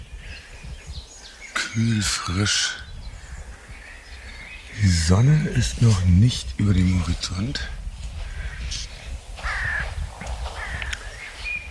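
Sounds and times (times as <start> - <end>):
birds chirping outdoors: 0.0 - 11.7
speech: 1.8 - 2.8, 4.9 - 7.8
crow-like caws outdoors: 9.4 - 11.1.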